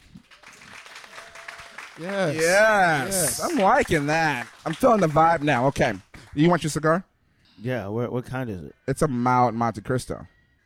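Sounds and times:
audience round of applause: 0.0s - 6.6s
speech: 2.0s - 10.3s.

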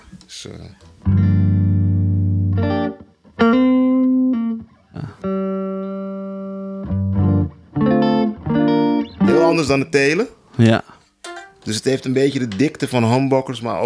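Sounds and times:
speech: 0.3s - 1.2s, 9.6s - 11.0s, 11.6s - 13.8s
dry electric guitar with gold foil pickup playing chords and notes: 1.0s - 9.8s.

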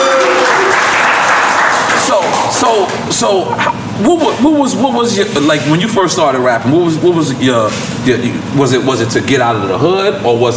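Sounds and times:
audience cheering and clapping: 0.0s - 3.8s
speech: 2.6s - 10.5s.

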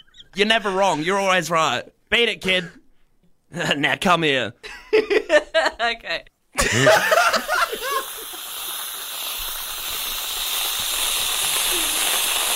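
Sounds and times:
speech: 0.4s - 2.8s, 3.5s - 7.5s
laughter: 6.6s - 8.2s
whipped cream can spraying: 7.2s - 12.5s.

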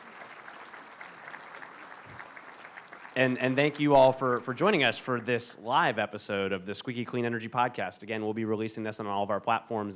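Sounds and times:
audience applause: 0.0s - 4.9s
speech: 3.2s - 9.9s.

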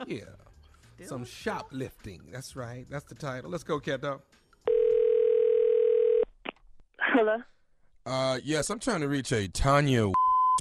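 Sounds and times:
speech: 0.1s - 0.4s, 1.0s - 4.4s, 7.2s - 10.2s
telephone dial tone: 4.7s - 6.3s.

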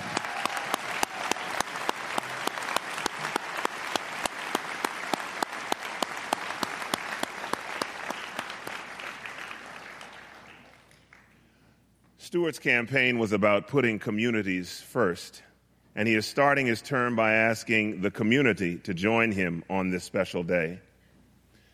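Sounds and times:
audience applauding for a choir: 0.0s - 11.5s
speech: 12.3s - 20.9s.

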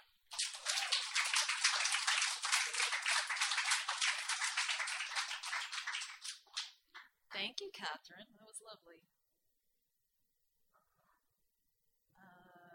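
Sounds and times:
round of applause: 0.0s - 7.1s
speech: 7.4s - 9.2s.

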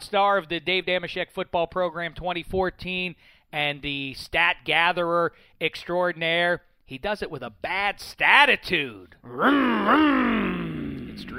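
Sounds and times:
speech: 0.1s - 10.5s, 11.2s - 11.3s
voice imitating a revving motorcycle engine: 9.3s - 11.3s.

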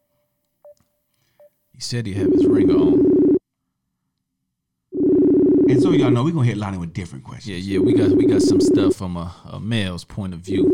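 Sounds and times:
speech: 1.8s - 3.2s, 5.7s - 10.7s
phone ringback tone: 2.2s - 3.4s, 5.0s - 6.2s, 7.8s - 9.0s.

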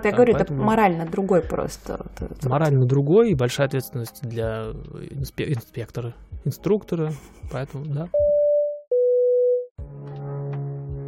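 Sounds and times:
speech: 0.0s - 8.3s
flat electronic tone beeps: 8.2s - 9.7s
airplane flying low overhead: 9.8s - 11.0s.

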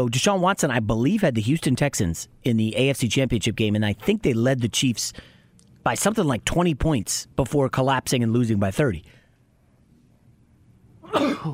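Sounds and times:
speech: 0.0s - 9.2s, 11.1s - 11.5s
sneeze: 11.0s - 11.5s.

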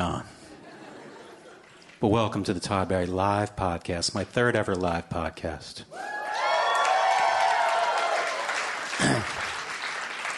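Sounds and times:
laughter: 0.4s - 1.9s
speech: 2.0s - 6.2s
live podcast audience applauding: 6.0s - 10.3s.

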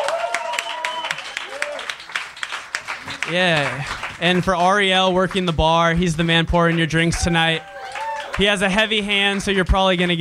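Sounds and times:
cheers and whoops: 0.0s - 2.0s, 7.1s - 8.4s
small crowd applauding: 0.0s - 10.2s
speech: 3.3s - 7.7s, 8.4s - 10.2s.

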